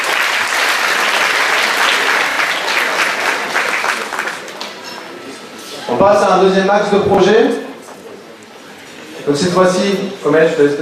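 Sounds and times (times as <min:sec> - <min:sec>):
audience applause: 0:00.0 - 0:05.3
speech: 0:06.0 - 0:07.6, 0:09.3 - 0:10.8.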